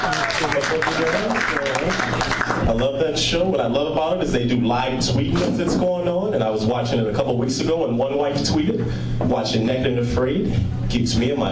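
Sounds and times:
audience applause: 0.0s - 2.7s
speech: 0.0s - 11.5s.

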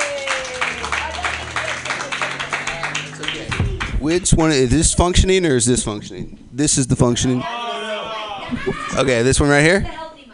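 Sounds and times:
open-mic comedy audience applauding a comedian: 0.0s - 4.3s
speech: 4.0s - 7.6s, 8.5s - 10.0s.

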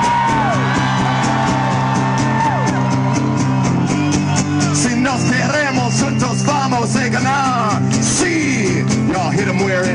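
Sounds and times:
yells and whoops: 0.0s - 6.6s
crowd cheering: 0.0s - 9.8s.

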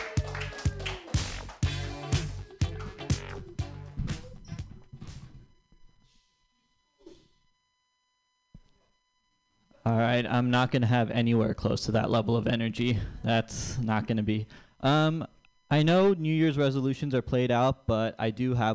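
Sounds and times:
crowd applause: 0.0s - 3.2s
speech: 9.8s - 18.7s.

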